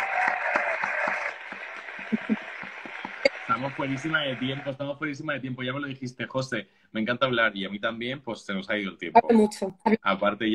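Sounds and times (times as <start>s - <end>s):
applause sound effect of clapping and cheering: 0.0s - 5.2s
speech: 3.8s - 10.5s.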